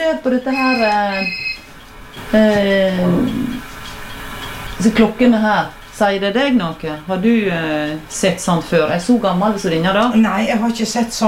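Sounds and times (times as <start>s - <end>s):
telephone ringing: 0.0s - 2.4s
speech: 0.1s - 1.5s, 2.2s - 3.6s, 4.8s - 11.2s.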